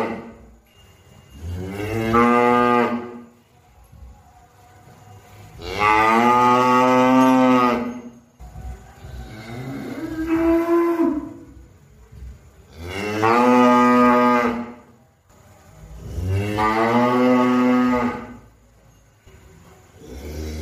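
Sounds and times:
cow mooing: 1.4s - 3.3s, 5.6s - 8.2s, 9.2s - 11.6s, 12.7s - 14.9s, 15.9s - 18.5s, 20.0s - 20.6s.

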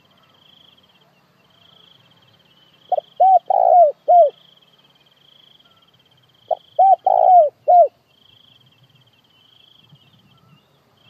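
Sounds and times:
faint continuous insect hum: 0.0s - 11.0s
spotted dove cooing: 2.9s - 4.4s, 6.5s - 8.0s.

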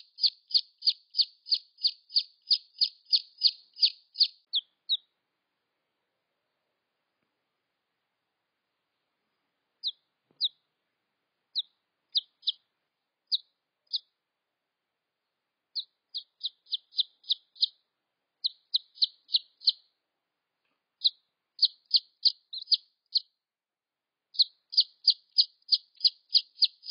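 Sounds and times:
Red junglefowl chick peeping: 0.0s - 5.1s, 9.8s - 10.6s, 11.5s - 12.6s, 13.3s - 14.1s, 15.8s - 17.8s, 18.4s - 19.9s, 21.0s - 23.3s, 24.4s - 26.9s.

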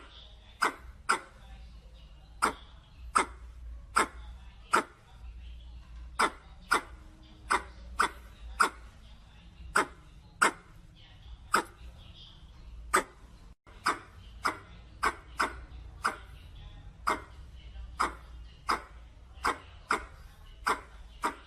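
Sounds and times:
red squirrel clicking calls: 0.0s - 1.4s, 2.4s - 5.0s, 6.2s - 8.9s, 9.7s - 10.7s, 11.5s - 11.8s, 13.7s - 16.3s, 17.0s - 17.3s, 18.0s - 21.4s.

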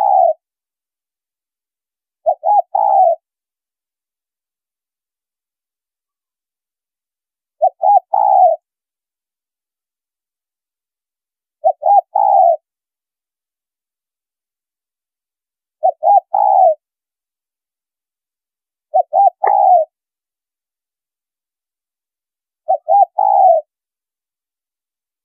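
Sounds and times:
spotted dove cooing: 0.0s - 0.4s, 2.2s - 3.2s, 7.6s - 8.7s, 11.6s - 12.6s, 15.8s - 16.8s, 18.9s - 19.9s, 22.7s - 23.7s.

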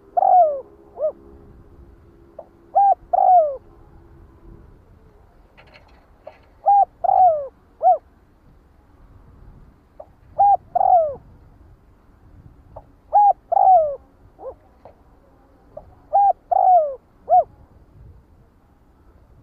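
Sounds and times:
spotted dove cooing: 0.0s - 1.4s, 2.4s - 4.1s, 4.8s - 8.1s, 10.0s - 11.3s, 12.8s - 15.0s, 15.7s - 17.7s.

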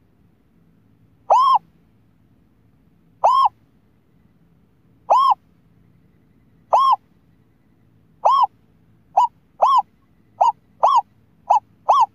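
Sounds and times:
scops owl hooting: 1.2s - 1.7s, 3.2s - 3.6s, 5.0s - 5.4s, 6.2s - 12.1s.

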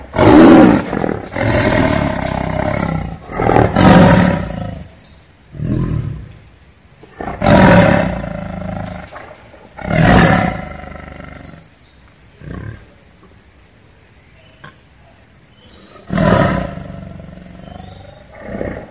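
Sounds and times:
tiger roaring: 0.0s - 4.9s, 7.1s - 11.6s, 16.0s - 18.8s.

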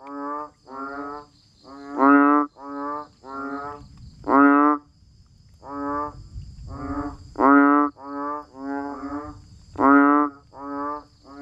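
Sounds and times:
banded bullfrogs croaking nasal honks: 0.0s - 11.4s.

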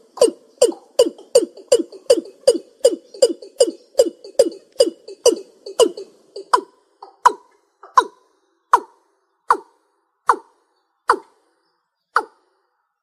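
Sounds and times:
East Asian bullfrog croaking: 0.0s - 8.2s.

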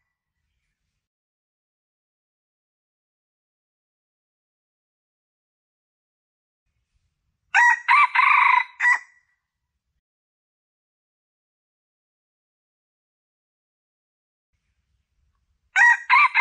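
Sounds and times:
Red junglefowl crowing: 7.5s - 9.1s, 15.8s - 16.3s.

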